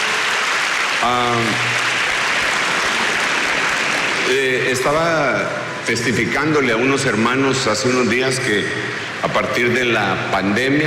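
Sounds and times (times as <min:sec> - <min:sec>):
applause: 0:00.0 - 0:05.3
speech: 0:01.0 - 0:01.9, 0:04.3 - 0:10.8.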